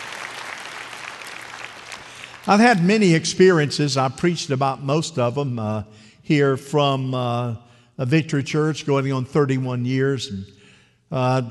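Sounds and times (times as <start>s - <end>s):
audience applause: 0.0s - 2.8s
speech: 2.5s - 11.4s.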